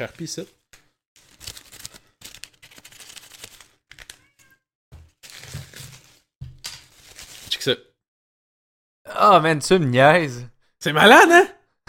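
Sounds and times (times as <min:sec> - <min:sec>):
speech: 0:00.0 - 0:00.6, 0:07.6 - 0:07.9, 0:09.1 - 0:11.8
piece of paper tearing: 0:01.2 - 0:04.2, 0:05.2 - 0:07.6.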